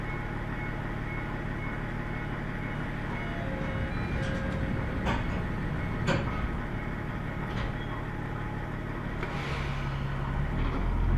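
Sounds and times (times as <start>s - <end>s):
Tenryu Hamanako Railway train engine droning: 0.0s - 11.1s
wheels clicking and clanking on rail joints: 2.3s - 11.1s.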